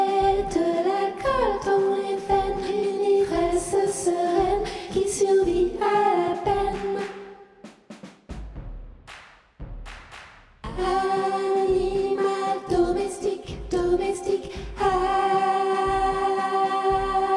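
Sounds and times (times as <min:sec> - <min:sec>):
soprano singing: 0:00.0 - 0:07.1, 0:10.7 - 0:17.3.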